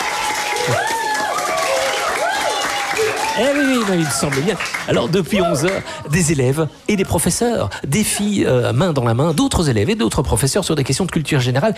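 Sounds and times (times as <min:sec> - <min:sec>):
voices cheering and calling out: 0:00.0 - 0:06.3
crowd applauding schoolchildren: 0:00.0 - 0:06.4
speech: 0:03.4 - 0:11.7.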